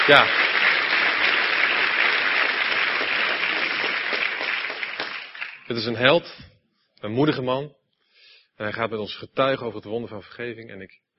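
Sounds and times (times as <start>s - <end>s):
speech: 0.0s - 0.4s, 5.7s - 7.8s, 8.6s - 11.1s
audience applause: 0.0s - 5.9s.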